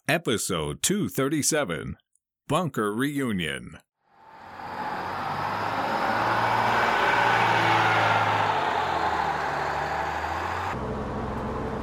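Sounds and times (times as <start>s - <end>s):
speech: 0.1s - 3.9s
vehicle engine rumbling as it departs a camp: 4.2s - 11.8s.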